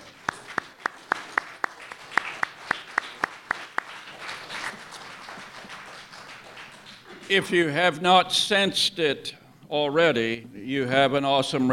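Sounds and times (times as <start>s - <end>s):
church congregation clapping for fathers: 0.0s - 8.0s
speech: 7.3s - 11.7s.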